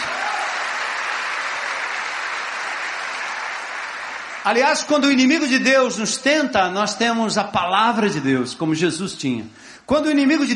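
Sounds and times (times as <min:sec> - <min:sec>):
audience applause: 0:00.0 - 0:05.1
speech: 0:04.4 - 0:10.5.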